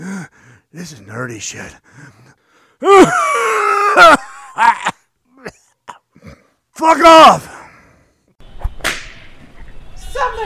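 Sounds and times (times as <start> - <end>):
speech: 0.7 - 2.2, 2.8 - 4.9, 6.8 - 7.5
flogger whip crack: 8.6 - 9.3.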